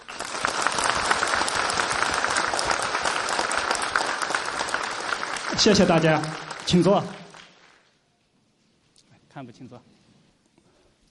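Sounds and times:
audience applause: 0:00.0 - 0:07.9
speech: 0:05.6 - 0:07.2, 0:09.5 - 0:10.0.

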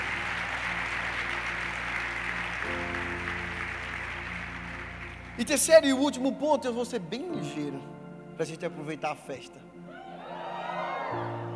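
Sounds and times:
audience applause: 0:00.0 - 0:06.2, 0:10.1 - 0:11.5
low sustained musical tones: 0:00.0 - 0:11.5
speech: 0:05.4 - 0:09.7.

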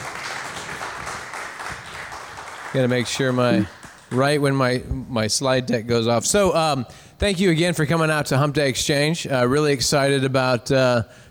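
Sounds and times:
audience applause: 0:00.0 - 0:04.4
speech: 0:02.7 - 0:11.3.

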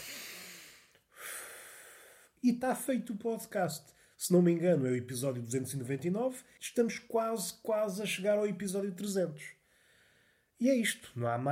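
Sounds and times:
deep breath taken slowly: 0:00.0 - 0:02.4, 0:09.6 - 0:10.6
speech: 0:02.4 - 0:09.6, 0:10.6 - 0:11.5.

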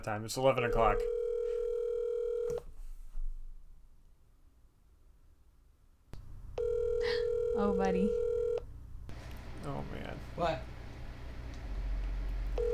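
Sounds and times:
speech: 0:00.0 - 0:01.2, 0:07.6 - 0:08.2, 0:09.6 - 0:10.7
outgoing phone call ringback tone: 0:01.0 - 0:02.6, 0:06.6 - 0:08.6, 0:12.6 - 0:12.7.

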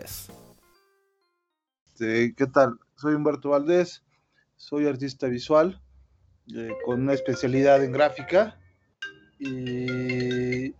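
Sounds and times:
speech: 0:02.0 - 0:05.8, 0:06.5 - 0:08.6, 0:09.4 - 0:10.7
mobile phone ringtone: 0:06.7 - 0:10.7.

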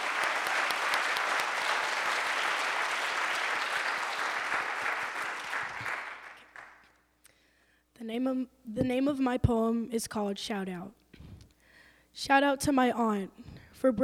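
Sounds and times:
audience clapping at a year-end reading and celebration: 0:00.0 - 0:07.0
speech: 0:08.1 - 0:11.0, 0:12.2 - 0:14.0.

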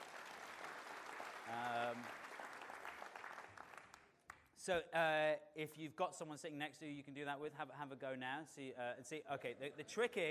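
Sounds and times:
audience applause: 0:00.0 - 0:04.1
speech: 0:01.5 - 0:02.2, 0:04.6 - 0:10.3.

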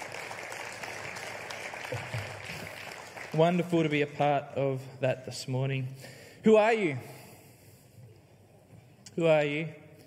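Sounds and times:
audience applause for families: 0:00.0 - 0:04.0
speech: 0:01.9 - 0:02.2, 0:03.3 - 0:07.1, 0:09.2 - 0:09.8.

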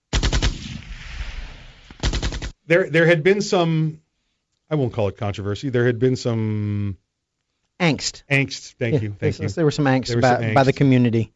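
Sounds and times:
machine gun fire at a machine gun shoot: 0:00.1 - 0:02.6
speech: 0:02.7 - 0:04.0, 0:04.7 - 0:07.0, 0:07.8 - 0:11.3.

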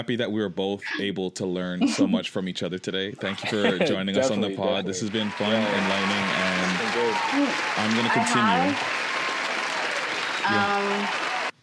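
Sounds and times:
speech: 0:00.0 - 0:09.0, 0:10.4 - 0:11.3
laughter: 0:03.0 - 0:08.9
long applause: 0:04.2 - 0:11.6.

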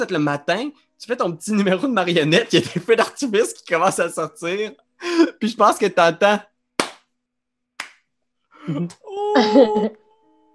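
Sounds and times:
speech: 0:00.0 - 0:06.5, 0:08.7 - 0:10.0
hand claps: 0:06.8 - 0:07.1, 0:07.8 - 0:08.1
laughter: 0:09.1 - 0:10.0.

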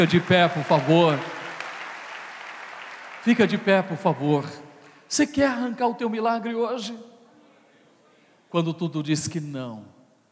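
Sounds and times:
speech: 0:00.0 - 0:01.3, 0:03.2 - 0:07.1, 0:08.5 - 0:10.0
audience applauding: 0:00.0 - 0:04.5.

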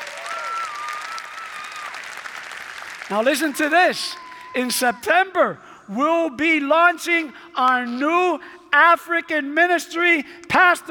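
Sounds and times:
audience clapping: 0:00.0 - 0:04.6
speech: 0:03.1 - 0:10.8.

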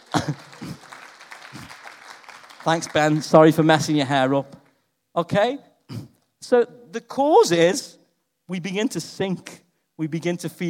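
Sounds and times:
audience applause: 0:00.0 - 0:04.0
speech: 0:02.6 - 0:04.6, 0:05.2 - 0:05.7, 0:06.5 - 0:10.6.

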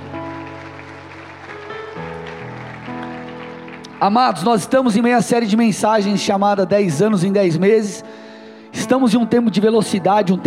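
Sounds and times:
crowd applause: 0:00.0 - 0:05.0
sustained keyboard chords: 0:00.0 - 0:10.4
speech: 0:04.0 - 0:08.2, 0:08.8 - 0:10.4.

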